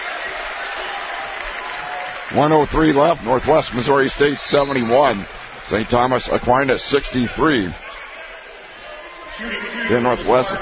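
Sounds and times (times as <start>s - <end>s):
applause and cheering from basketball fans behind the sideline: 0.0s - 10.6s
speech: 2.3s - 7.8s, 9.4s - 10.6s.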